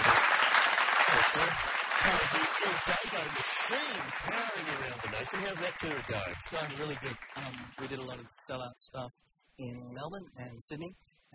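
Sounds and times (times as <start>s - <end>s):
audience applause: 0.0s - 8.2s
speech: 1.3s - 11.3s.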